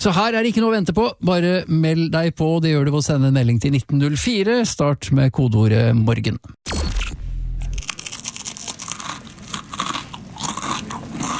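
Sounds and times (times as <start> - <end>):
speech: 0.0 - 7.0
person crunching crispbread: 7.7 - 11.3.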